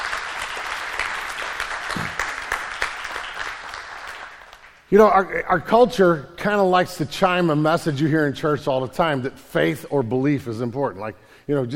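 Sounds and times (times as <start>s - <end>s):
crowd applauding: 0.0s - 4.9s
speech: 4.9s - 11.7s.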